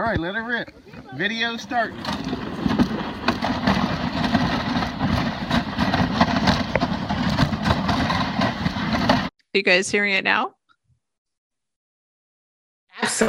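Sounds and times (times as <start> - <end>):
speech: 0.0 - 2.4, 9.5 - 10.6, 13.0 - 13.2
dog sled running on refrozen snow: 0.5 - 9.3.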